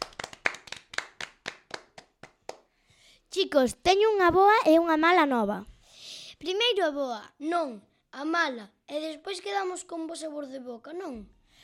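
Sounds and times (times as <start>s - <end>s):
hand clapping: 0.0s - 2.7s
speech: 3.4s - 5.7s, 6.4s - 11.4s.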